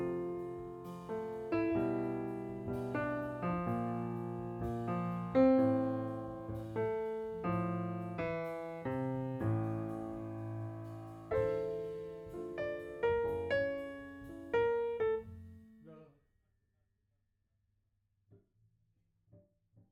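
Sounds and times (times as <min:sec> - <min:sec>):
piano note B: 0:00.0 - 0:15.6.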